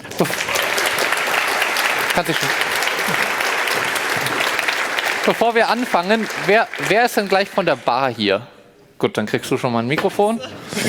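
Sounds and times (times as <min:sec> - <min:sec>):
audience applause: 0:00.0 - 0:08.1
speech: 0:00.2 - 0:00.5, 0:02.2 - 0:04.3, 0:05.2 - 0:10.8.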